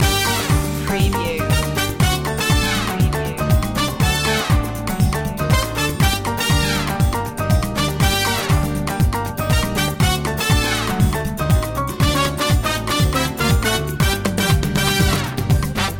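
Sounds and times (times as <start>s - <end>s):
hot summer samba music loop: 0.0s - 15.9s.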